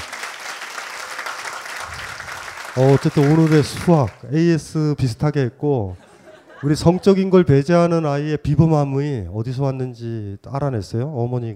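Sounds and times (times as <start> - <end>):
audience applause: 0.0 - 4.2
speech: 2.8 - 6.0, 6.6 - 11.5
laughter: 5.9 - 7.5.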